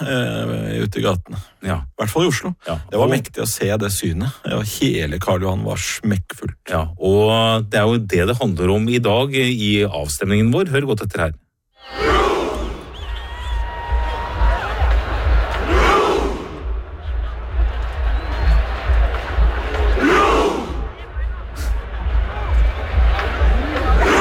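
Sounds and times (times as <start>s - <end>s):
speech: 0.1s - 12.1s
football fans chanting on Karl Johan in Oslo at World Cup celebration: 11.8s - 24.1s.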